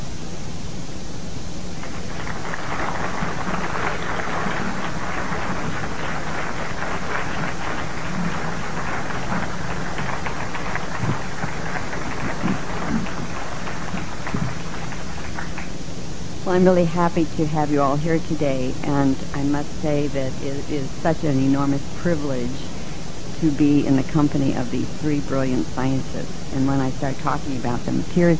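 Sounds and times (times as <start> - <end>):
audience applause: 1.8 - 15.8
speech: 16.5 - 22.7, 23.4 - 28.3.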